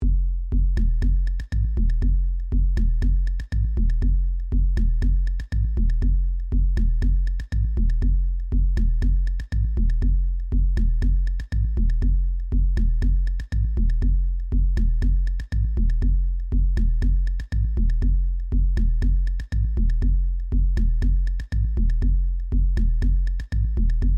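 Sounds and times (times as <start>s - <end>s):
drum: 0.0s - 24.1s.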